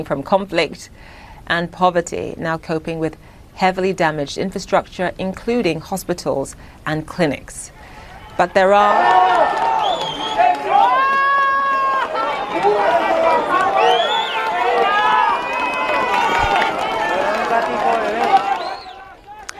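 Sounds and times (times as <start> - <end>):
speech: 0.0 - 7.8, 8.4 - 10.2
crowd cheering and shouting at a rescue: 8.0 - 19.5
high yells: 8.0 - 19.5.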